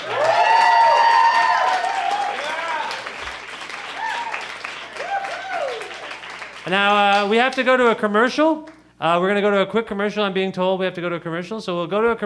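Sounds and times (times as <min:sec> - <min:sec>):
audience cheering and applauding: 0:00.0 - 0:07.4
speech: 0:06.7 - 0:12.2.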